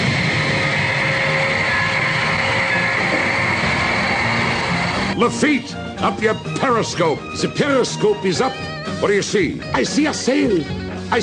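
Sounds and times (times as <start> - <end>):
submarine engines running: 0.0 - 5.2
speech: 5.2 - 11.2.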